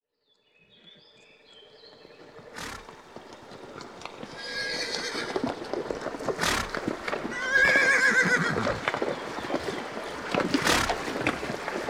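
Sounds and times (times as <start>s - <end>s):
horse whinnying: 2.6s - 3.1s, 4.3s - 5.6s, 6.2s - 9.0s, 10.4s - 11.3s.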